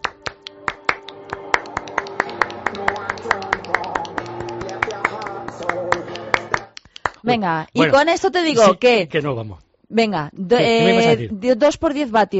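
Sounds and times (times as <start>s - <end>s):
music with hand clapping: 0.0s - 7.4s
speech: 7.2s - 12.3s.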